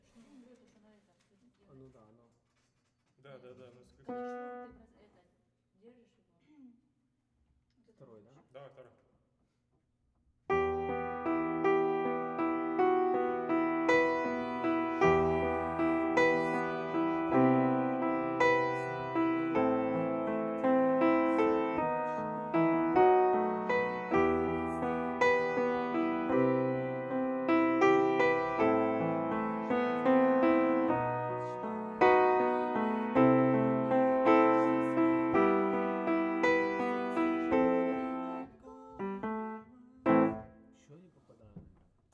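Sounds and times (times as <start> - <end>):
piano: 3.9 - 4.9, 10.5 - 40.8.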